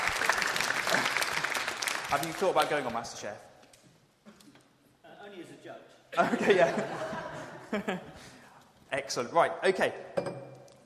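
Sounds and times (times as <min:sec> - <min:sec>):
audience applause: 0:00.0 - 0:02.9
speech: 0:02.1 - 0:03.5, 0:06.2 - 0:08.3, 0:08.9 - 0:10.4
laughter: 0:06.2 - 0:08.4.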